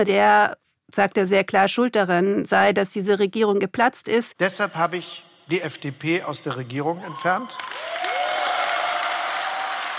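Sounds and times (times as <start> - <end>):
speech: 0.0 - 8.1
audience applause: 7.0 - 9.9.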